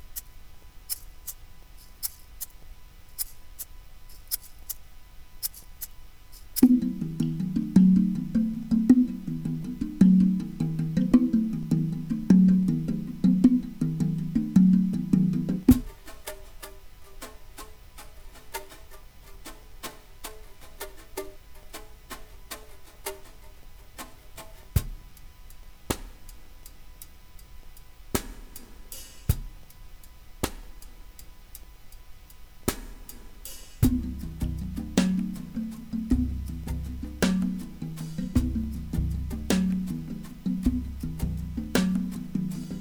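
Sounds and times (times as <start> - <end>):
rhythm groove: 0.0 - 42.7.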